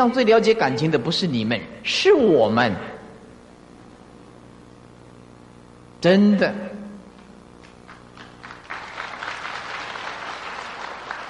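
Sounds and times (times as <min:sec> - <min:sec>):
speech: 0:00.0 - 0:03.0, 0:06.0 - 0:06.7
applause: 0:07.2 - 0:11.2.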